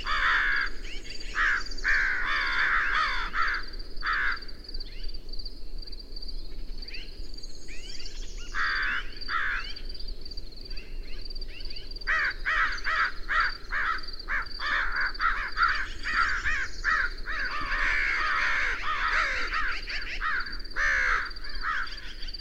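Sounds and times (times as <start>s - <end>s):
bird cawing: 0.0s - 4.5s, 8.6s - 9.8s, 12.1s - 22.3s.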